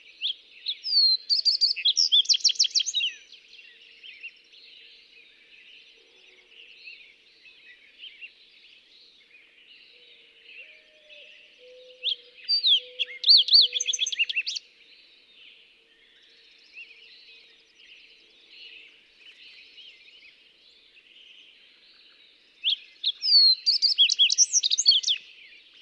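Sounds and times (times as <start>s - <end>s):
Fox Sparrow calling: 0.7s - 3.3s, 11.6s - 14.6s, 22.7s - 25.2s.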